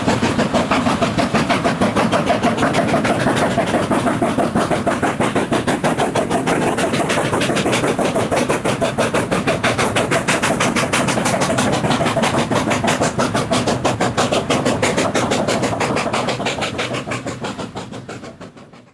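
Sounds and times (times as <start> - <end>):
steam locomotives: 0.0 - 18.9.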